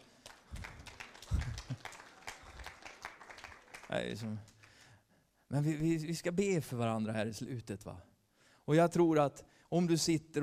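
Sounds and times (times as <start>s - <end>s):
audience applause: 0.0s - 4.8s
speech: 3.9s - 4.5s, 5.5s - 8.1s, 8.7s - 10.4s.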